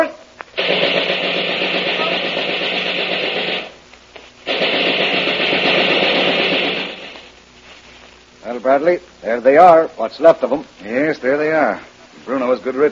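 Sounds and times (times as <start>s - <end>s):
rapid gunfire: 0.6s - 3.8s, 4.4s - 7.3s
speech: 8.8s - 12.8s.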